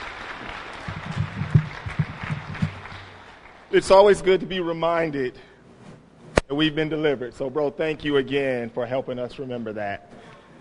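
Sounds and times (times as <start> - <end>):
audience applause: 0.0 - 3.7
speech: 3.7 - 5.5, 6.5 - 10.2.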